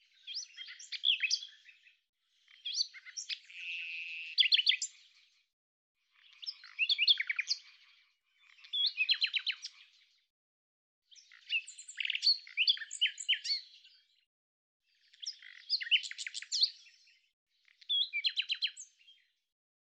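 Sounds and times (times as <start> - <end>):
common nightingale song: 0.0 - 5.1, 6.1 - 10.0, 11.1 - 14.0, 15.0 - 17.1, 17.7 - 19.2.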